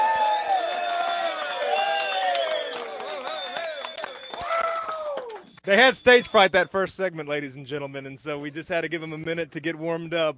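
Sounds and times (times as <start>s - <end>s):
live crowd cheering and whooping: 0.0s - 5.5s
scattered clapping: 0.0s - 6.2s
speech: 5.6s - 10.3s.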